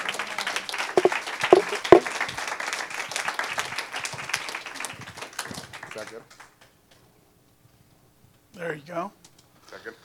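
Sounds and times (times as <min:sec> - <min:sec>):
crowd applause: 0:00.0 - 0:05.9
speech: 0:06.0 - 0:06.4, 0:08.6 - 0:09.2, 0:09.8 - 0:10.0.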